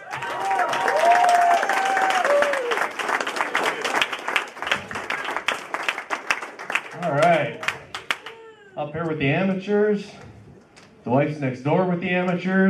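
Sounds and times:
whoops and cheers: 0.0 - 2.9
audience clapping for comedian: 0.0 - 8.4
speech: 8.9 - 10.3, 11.1 - 12.6.

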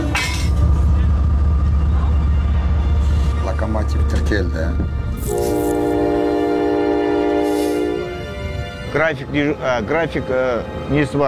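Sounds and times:
rail rumble of a passing passenger train: 0.0 - 10.9
speech: 4.3 - 5.4, 9.0 - 11.2
passing passenger train horn: 5.2 - 9.1.

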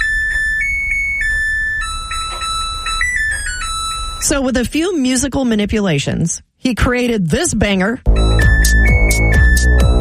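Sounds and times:
washing machine end-of-cycle beeping jingle: 0.0 - 4.6
speech: 4.2 - 8.2, 8.8 - 10.0.

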